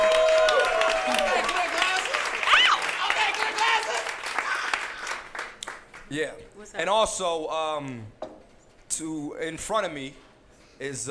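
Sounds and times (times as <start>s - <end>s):
audience whooping at a comedy show: 0.0s - 5.1s
audience clapping at a comedy show welcoming a comedian: 0.0s - 6.4s
speech: 6.1s - 8.2s, 9.0s - 10.2s, 10.8s - 11.0s.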